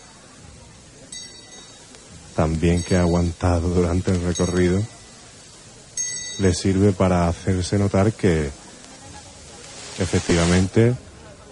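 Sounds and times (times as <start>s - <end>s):
low murmur: 0.0s - 11.5s
small procession bell ringing: 1.1s - 1.9s, 2.7s - 3.4s, 6.0s - 6.6s
speech: 2.4s - 4.9s, 6.4s - 8.6s, 10.0s - 11.0s.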